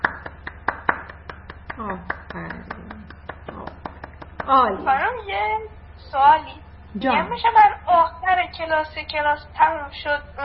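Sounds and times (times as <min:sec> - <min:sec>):
students clapping in a class: 0:00.0 - 0:04.7
speech: 0:01.8 - 0:02.8, 0:04.5 - 0:10.4.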